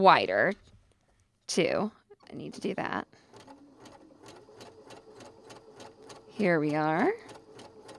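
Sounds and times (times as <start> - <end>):
speech: 0.0 - 0.7, 1.5 - 3.2, 6.4 - 7.3
sewing machine zigzag stitching: 2.2 - 7.9.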